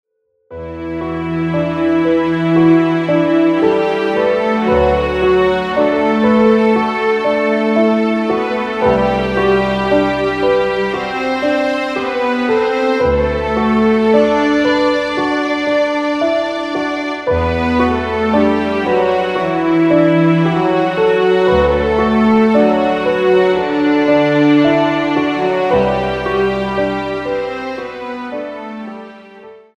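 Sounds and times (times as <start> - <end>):
sad song: 0.5 - 29.7.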